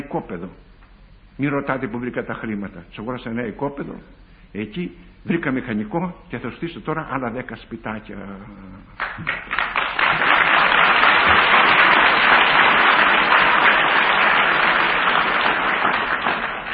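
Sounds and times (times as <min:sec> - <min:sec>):
speech: 0:00.0 - 0:00.7, 0:01.4 - 0:10.2
audience applause: 0:09.0 - 0:16.7.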